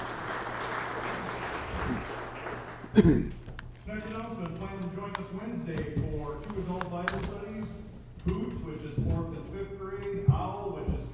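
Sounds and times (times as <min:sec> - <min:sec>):
audience applause: 0:00.0 - 0:03.4
speech: 0:02.9 - 0:10.4.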